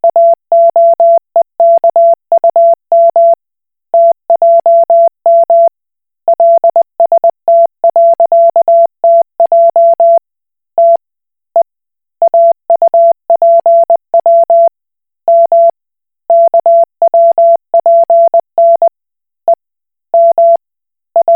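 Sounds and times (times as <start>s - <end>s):
Koch Morse code beeps: 0.0s - 3.4s, 4.0s - 5.7s, 6.3s - 10.2s, 12.3s - 14.7s, 15.3s - 15.7s, 16.3s - 18.9s, 20.2s - 20.6s, 21.2s - 21.3s.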